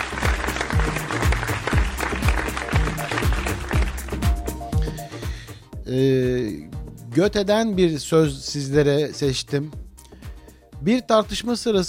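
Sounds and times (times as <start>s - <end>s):
audience applause: 0.0s - 4.8s
speech: 5.9s - 9.8s, 10.8s - 11.8s.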